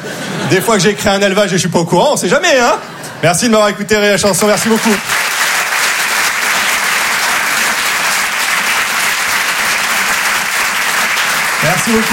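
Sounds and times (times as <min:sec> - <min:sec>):
speech: 0:00.5 - 0:05.3, 0:11.9 - 0:12.1
audience applause: 0:04.4 - 0:12.1.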